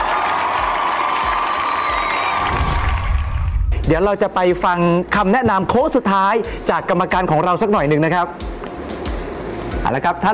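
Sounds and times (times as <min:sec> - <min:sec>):
audience applause: 0:00.0 - 0:03.7
speech: 0:03.9 - 0:08.5, 0:09.8 - 0:10.3.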